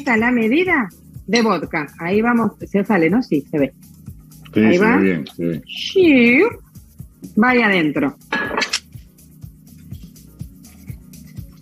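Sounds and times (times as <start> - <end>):
speech: 0.0 - 6.6, 7.2 - 8.6
spoon clinking on glass: 8.3 - 8.8.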